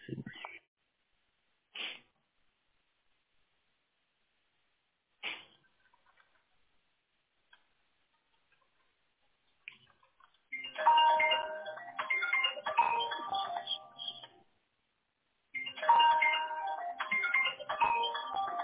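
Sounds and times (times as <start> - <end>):
mobile phone ringing: 10.6 - 14.3, 15.6 - 18.6.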